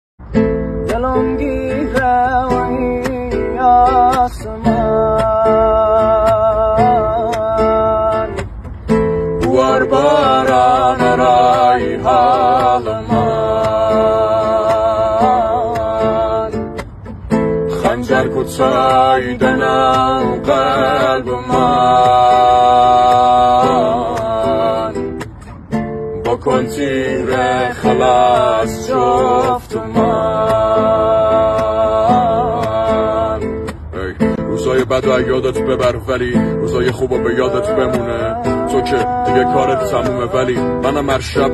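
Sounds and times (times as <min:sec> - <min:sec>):
guitar: 0:00.2 - 0:41.5.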